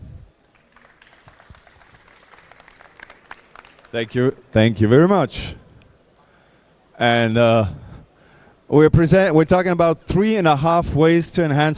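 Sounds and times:
audience applause: 0.3s - 4.3s
speech: 3.9s - 5.6s, 7.0s - 7.8s, 8.7s - 11.7s.

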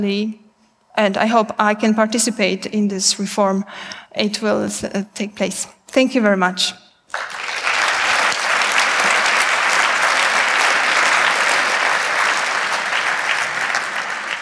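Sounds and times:
speech: 0.0s - 0.4s, 1.0s - 7.4s
round of applause: 7.1s - 14.4s.

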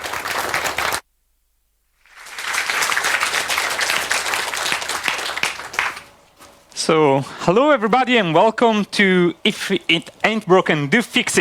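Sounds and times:
audience applause: 0.0s - 1.0s, 2.0s - 6.2s
speech: 6.9s - 11.3s.

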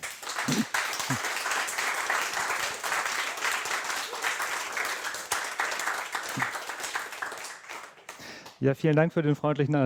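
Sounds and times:
sustained applause from a sizable crowd: 0.0s - 8.6s
speech: 8.6s - 9.8s.

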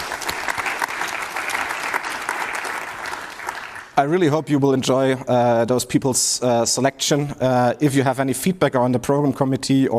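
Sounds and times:
audience applause: 0.0s - 4.0s
speech: 4.0s - 9.9s.

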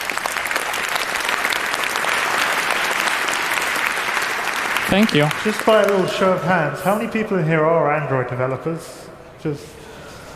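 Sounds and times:
crowd clapping: 0.0s - 6.7s
speech: 4.9s - 9.8s.

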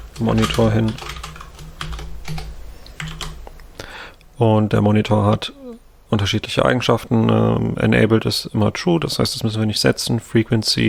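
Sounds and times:
typing server configuration on a computer keyboard: 0.0s - 3.4s
speech: 0.2s - 1.2s, 4.4s - 10.8s.

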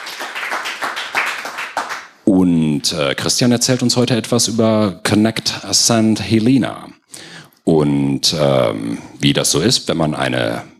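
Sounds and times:
audience clapping welcoming a guest speaker at a Datengarten talk: 0.0s - 2.2s
speech: 2.3s - 7.0s, 7.7s - 10.7s.

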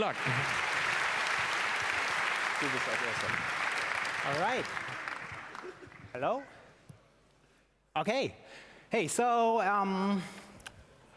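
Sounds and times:
speech: 0.0s - 0.6s, 2.6s - 3.6s, 4.2s - 4.9s, 6.1s - 6.6s, 8.0s - 10.4s
audience applause: 0.0s - 6.2s.

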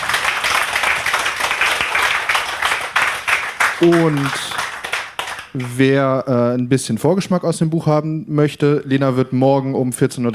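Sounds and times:
audience applause: 0.0s - 5.8s
speech: 3.8s - 4.5s, 5.5s - 10.3s.

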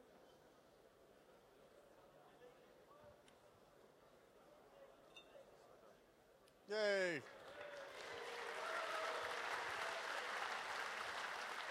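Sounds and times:
speech: 6.7s - 7.4s
crowd applauding: 7.3s - 11.6s.

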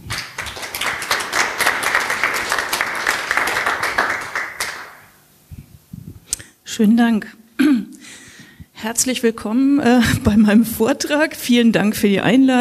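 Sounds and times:
audience applause: 0.0s - 5.1s
speech: 6.8s - 7.4s, 8.8s - 12.5s.

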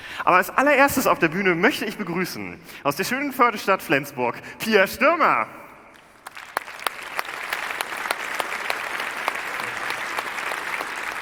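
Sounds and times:
speech: 0.2s - 5.6s
audience applause: 6.0s - 11.1s.

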